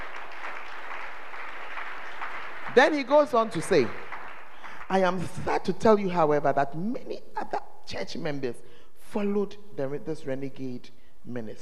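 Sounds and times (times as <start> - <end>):
audience clapping: 0.0 - 6.1
speech: 2.8 - 4.0, 4.9 - 11.6.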